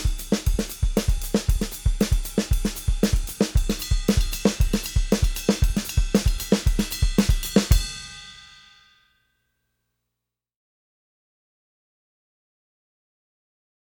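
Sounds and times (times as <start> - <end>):
drum kit playing a caterete rhythm: 0.0 - 8.5.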